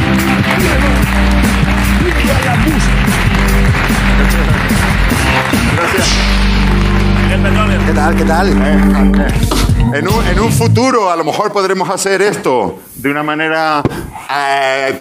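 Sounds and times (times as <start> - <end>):
audience applause: 0.0 - 9.5
speech: 8.1 - 15.0.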